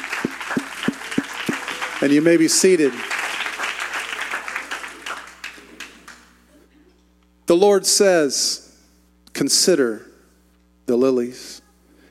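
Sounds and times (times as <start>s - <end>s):
audience clapping hands: 0.0s - 6.4s
speech: 2.0s - 3.2s, 7.5s - 8.6s, 9.4s - 10.1s, 10.9s - 11.6s.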